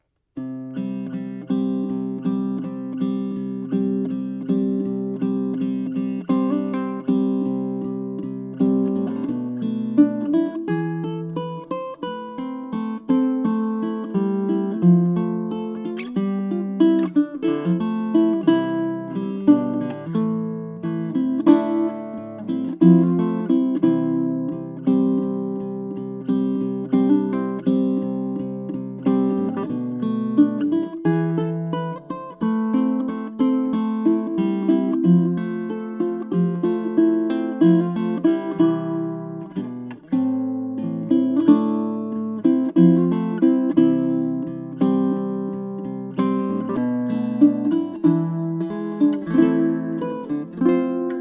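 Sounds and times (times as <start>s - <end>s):
guitar: 0.0s - 51.1s.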